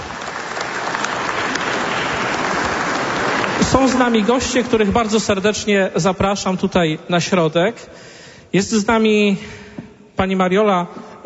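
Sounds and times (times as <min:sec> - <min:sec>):
audience applause: 0:00.0 - 0:04.8
speech: 0:03.6 - 0:09.6, 0:10.2 - 0:11.2.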